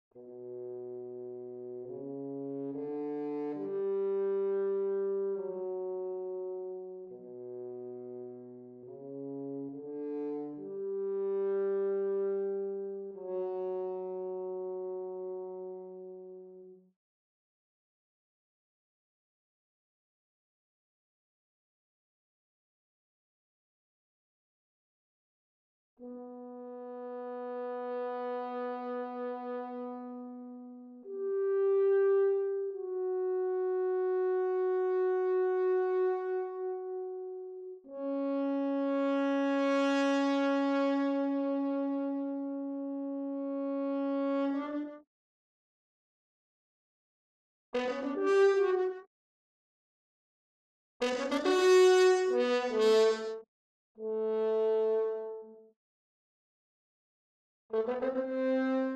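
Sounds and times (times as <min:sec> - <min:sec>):
horn: 0:00.1 - 0:16.9, 0:26.0 - 0:45.0, 0:47.8 - 0:49.1, 0:51.0 - 0:55.7, 0:57.7 - 0:58.9.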